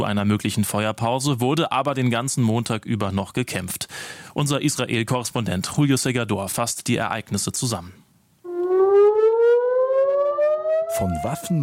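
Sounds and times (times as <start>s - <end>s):
speech: 0.0s - 8.0s, 10.9s - 11.6s
air raid siren wailing in northern Israel: 8.5s - 11.6s.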